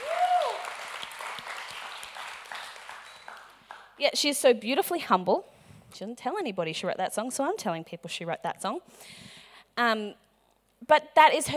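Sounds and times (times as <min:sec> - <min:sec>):
audience applause: 0:00.0 - 0:04.0
speech: 0:04.0 - 0:10.2, 0:10.8 - 0:11.5.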